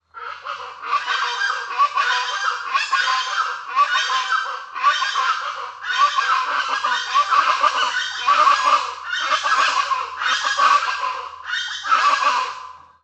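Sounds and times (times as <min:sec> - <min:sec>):
birds calling in chorus: 0:00.2 - 0:12.8.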